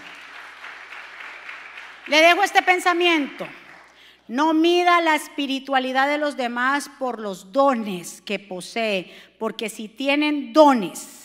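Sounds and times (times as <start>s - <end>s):
audience applause: 0.0s - 2.4s
speech: 2.1s - 3.6s, 4.3s - 11.2s.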